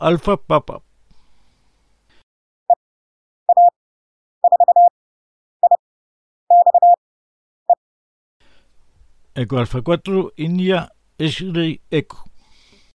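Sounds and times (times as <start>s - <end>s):
speech: 0.0s - 0.9s, 9.4s - 12.3s
Morse code tones sending a radio callsign: 3.5s - 3.7s, 4.4s - 4.9s, 6.5s - 7.0s.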